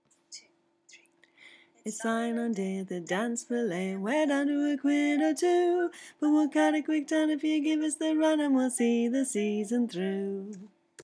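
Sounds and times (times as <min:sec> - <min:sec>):
folk choir singing in harmony: 0:01.9 - 0:10.7.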